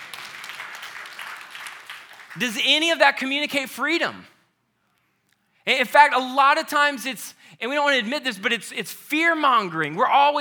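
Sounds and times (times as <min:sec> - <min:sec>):
audience clapping: 0:00.0 - 0:03.0
speech: 0:02.3 - 0:04.3, 0:05.6 - 0:10.3.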